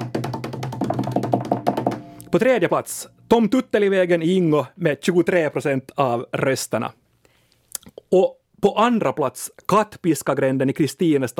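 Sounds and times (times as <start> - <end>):
short drum roll: 0.0 - 2.7
low steady hum: 2.0 - 4.8
speech: 2.3 - 7.0, 7.9 - 11.3.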